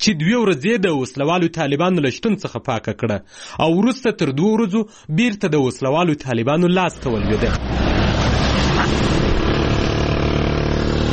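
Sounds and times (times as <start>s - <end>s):
speech: 0.0s - 8.0s
engine noise at a vehicle station in Tirinkot city: 6.9s - 11.1s.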